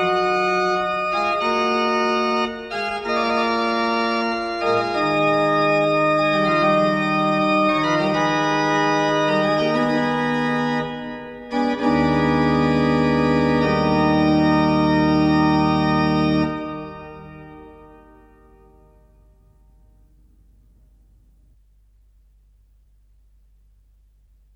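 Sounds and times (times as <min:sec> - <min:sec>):
organ mass: 0:00.0 - 0:19.6.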